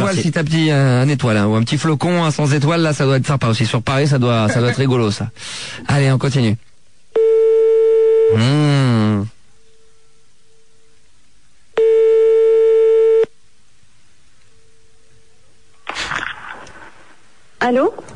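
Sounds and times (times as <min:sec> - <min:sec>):
speech: 0:00.1 - 0:06.7, 0:08.3 - 0:09.4, 0:17.6 - 0:18.1
telephone line tones while calling a small hotel: 0:07.2 - 0:08.4, 0:11.8 - 0:13.3.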